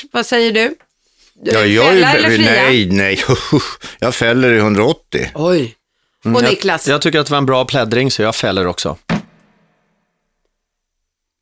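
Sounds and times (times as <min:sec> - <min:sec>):
speech: 0:00.1 - 0:09.2
laughter: 0:01.8 - 0:03.8
judge's gavel knock: 0:09.1 - 0:09.6.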